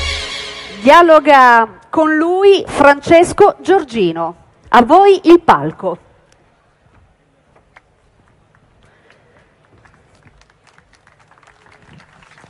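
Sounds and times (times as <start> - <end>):
speech: 0.9 - 6.1
audience applause: 9.6 - 12.4.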